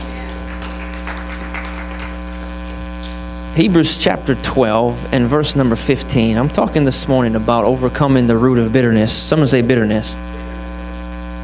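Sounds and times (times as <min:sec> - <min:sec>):
audience applauding: 0:00.0 - 0:03.2
loud constant electrical hum: 0:00.0 - 0:11.4
speech: 0:03.6 - 0:10.3.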